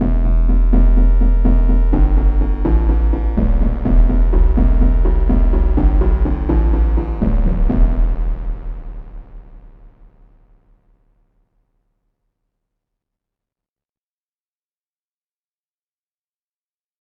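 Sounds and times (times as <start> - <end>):
crystal bass: 0.0 - 10.4.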